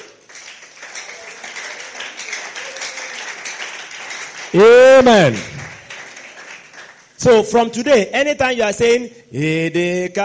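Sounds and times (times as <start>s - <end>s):
crowd clapping: 0.0s - 7.5s
speech: 4.5s - 5.5s, 7.2s - 10.2s.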